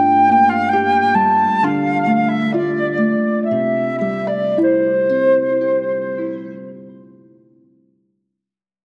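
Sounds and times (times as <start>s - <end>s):
flute playing a traditional Jewish piece: 0.0s - 7.4s
harp playing a traditional Jewish piece: 0.0s - 7.9s.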